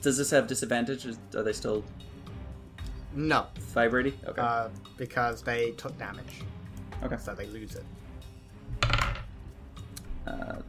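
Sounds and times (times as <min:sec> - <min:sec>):
speech: 0:00.0 - 0:02.2, 0:03.2 - 0:08.0, 0:10.3 - 0:10.6
dice tumbling across a hard tabletop: 0:08.8 - 0:09.3.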